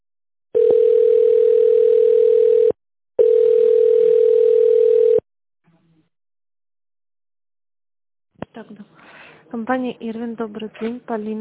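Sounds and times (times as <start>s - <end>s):
telephone ringback tone while waiting on the line: 0.6s - 5.2s
speech: 9.6s - 11.3s.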